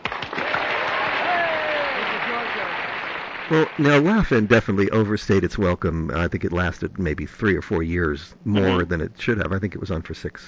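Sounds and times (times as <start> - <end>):
crowd applause on cue: 0.0 - 4.4
speech: 3.5 - 10.4.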